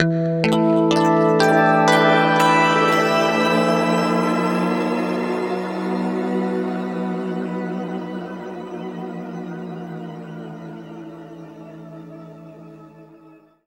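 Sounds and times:
guitar harmonic: 0.1s - 9.6s.

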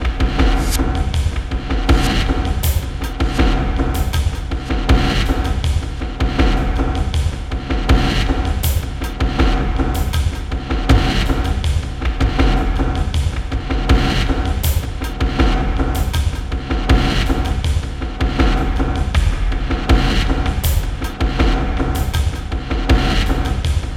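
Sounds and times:
industrial percussion: 0.0s - 23.9s.

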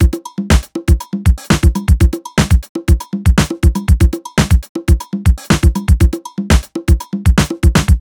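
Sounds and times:
120 hard basic nu jazz house beats: 0.0s - 7.9s.

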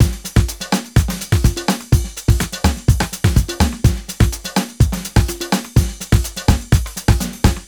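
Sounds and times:
busy 125 bpm nu jazz house beat: 0.0s - 7.6s.

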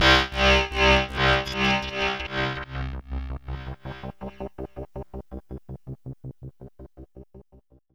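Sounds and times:
trip hop music: 0.0s - 4.2s.

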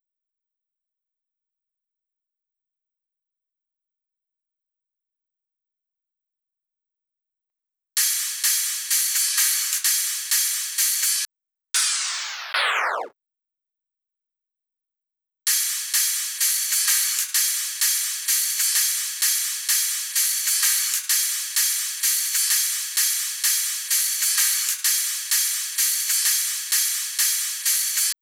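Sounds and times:
hi-hat loop: 8.0s - 11.2s, 15.5s - 28.1s
drum loop: 11.8s - 13.1s.

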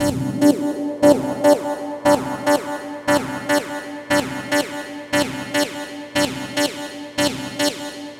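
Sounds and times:
techno synth: 0.0s - 8.1s.

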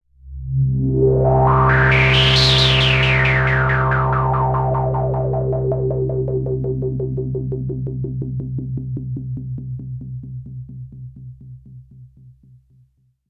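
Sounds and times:
Moog Minimoog synthesizer pad on C2: 0.3s - 9.5s.

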